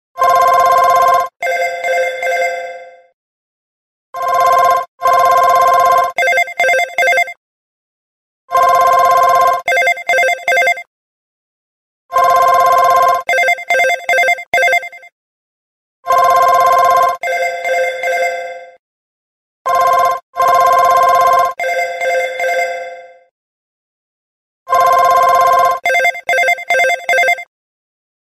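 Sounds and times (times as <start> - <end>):
business phone ringing: 0.2 - 2.8, 4.2 - 7.4, 8.5 - 10.9, 12.1 - 15.1, 16.1 - 18.4, 19.7 - 22.9, 24.7 - 27.5.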